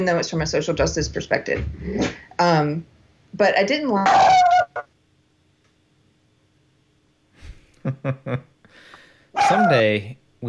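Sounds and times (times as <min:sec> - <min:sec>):
speech: 0:00.0 - 0:04.9, 0:07.9 - 0:08.5, 0:09.4 - 0:10.4
laughter: 0:07.9 - 0:08.4
dog barking in the studio: 0:09.4 - 0:09.8.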